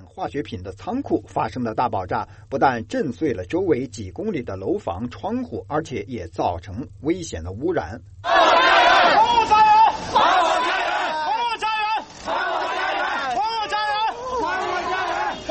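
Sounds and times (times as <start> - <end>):
speech: 0.2 - 8.5, 9.2 - 10.8
residents shouting at an emotional protest: 8.2 - 15.5.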